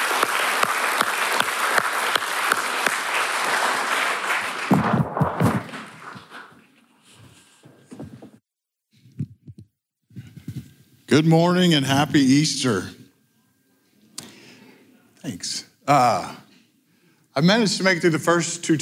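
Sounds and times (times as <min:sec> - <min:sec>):
loud round of audience applause: 0:00.0 - 0:06.6
speech: 0:11.1 - 0:13.0, 0:15.9 - 0:16.4, 0:17.4 - 0:18.8.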